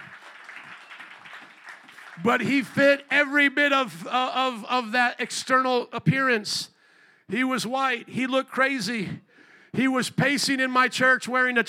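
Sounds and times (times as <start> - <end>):
audience applause: 0.0 - 3.2
speech: 2.2 - 6.7, 7.3 - 11.6.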